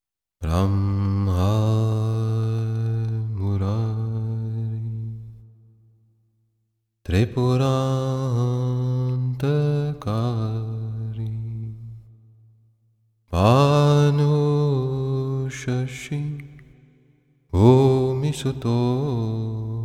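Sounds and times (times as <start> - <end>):
bhajan devotional singing: 0.4 - 5.4, 7.1 - 12.0, 13.3 - 16.8, 17.5 - 19.8.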